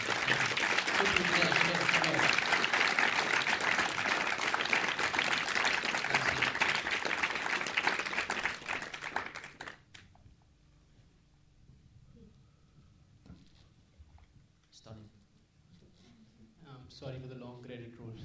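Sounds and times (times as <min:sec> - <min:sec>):
applause: 0:00.0 - 0:10.2.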